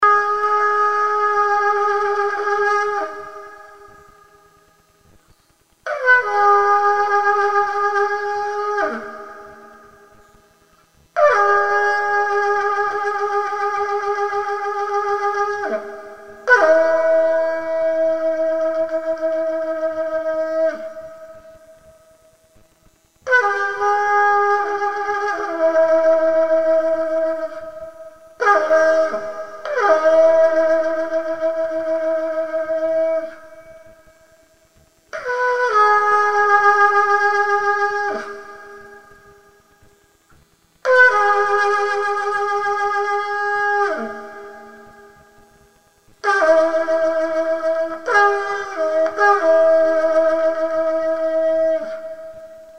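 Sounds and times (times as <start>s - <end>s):
trutruka: 0.0s - 52.7s.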